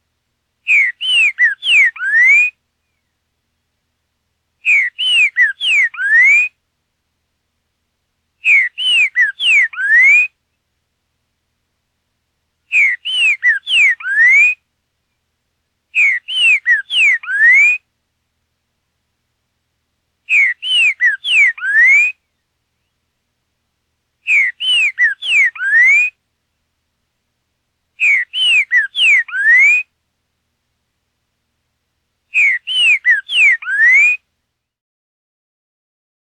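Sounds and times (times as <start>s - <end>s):
Boiadeiro saffron-billed sparrow singing: 0.7s - 3.2s, 4.6s - 6.4s, 8.4s - 10.2s, 12.7s - 14.5s, 16.0s - 17.7s, 20.3s - 23.0s, 24.3s - 26.1s, 28.0s - 29.8s, 32.3s - 34.2s.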